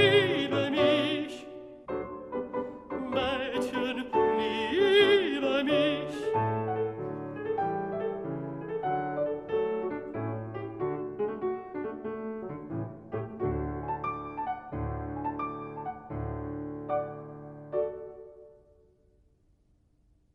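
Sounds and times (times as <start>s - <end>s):
art song for voice with piano: 0.0s - 1.7s, 2.9s - 6.4s
piano accompaniment: 0.0s - 19.2s.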